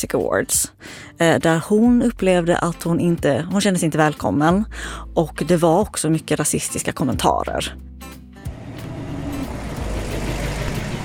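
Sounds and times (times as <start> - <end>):
speech: 0.0 - 8.2
car driving on a road: 8.5 - 11.0.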